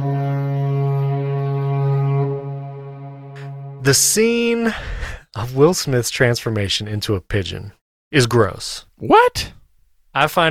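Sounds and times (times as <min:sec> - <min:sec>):
spoiler warning horn sound effect: 0:00.0 - 0:04.2
speech: 0:03.9 - 0:10.4.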